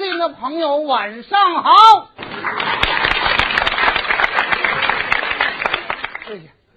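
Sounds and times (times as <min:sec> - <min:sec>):
speech: 0:00.2 - 0:02.8, 0:06.3 - 0:06.6
audience applause: 0:02.2 - 0:06.5.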